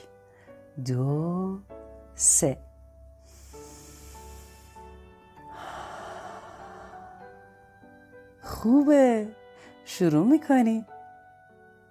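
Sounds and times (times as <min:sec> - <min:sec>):
speech: 0:00.8 - 0:02.7, 0:08.6 - 0:10.9
deep breath taken before reading a book: 0:03.2 - 0:07.5.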